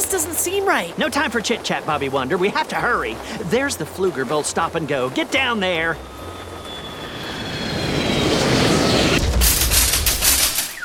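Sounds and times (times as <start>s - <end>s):
roaring rush of a rolling shopping cart: 0.0s - 10.4s
speech: 0.1s - 6.2s.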